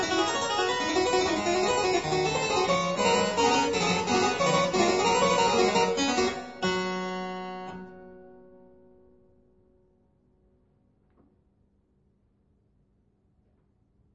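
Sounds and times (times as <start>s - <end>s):
two-manual harpsichord piece: 0.0s - 9.0s.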